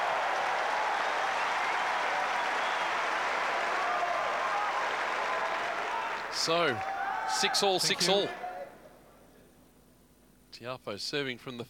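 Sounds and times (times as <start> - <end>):
tennis crowd cheering and applauding: 0.0 - 8.4
speech: 6.4 - 8.4, 10.6 - 11.6.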